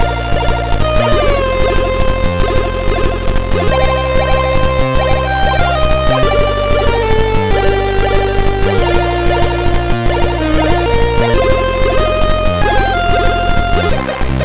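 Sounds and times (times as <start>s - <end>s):
SID MOS6581R3 chip arpeggio: 0.0s - 14.4s.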